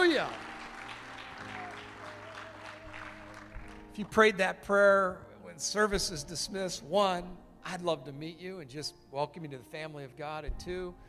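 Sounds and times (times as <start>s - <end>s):
church congregation applauding after welcoming new believers: 0.0s - 4.2s
speech: 0.2s - 0.4s, 4.0s - 11.0s.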